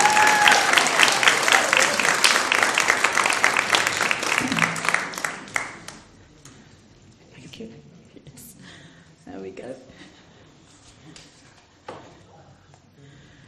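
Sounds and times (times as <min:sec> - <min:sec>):
audience applause: 0:00.0 - 0:06.1.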